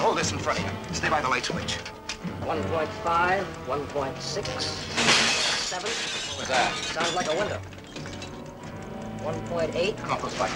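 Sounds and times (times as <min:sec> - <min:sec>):
speech: 0:00.2 - 0:07.8, 0:09.2 - 0:10.5
window glass shattering: 0:04.8 - 0:08.4.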